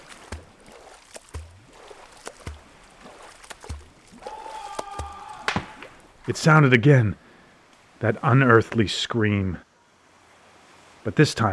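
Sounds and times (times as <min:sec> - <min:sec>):
swimming strokes splashing through water: 0:00.0 - 0:06.4
speech: 0:06.3 - 0:07.2, 0:08.0 - 0:09.7, 0:11.0 - 0:11.5.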